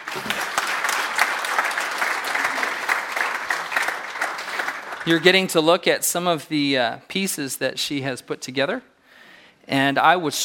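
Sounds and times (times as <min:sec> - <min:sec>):
audience applauding to welcome a speaker at an art talk: 0:00.0 - 0:05.6
speech: 0:05.0 - 0:08.9, 0:09.7 - 0:10.4.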